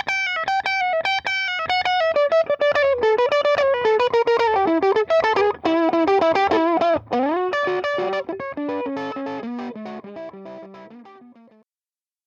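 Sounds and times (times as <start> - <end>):
Telecaster electric guitar with Alnico pickups: 0.0 - 11.6.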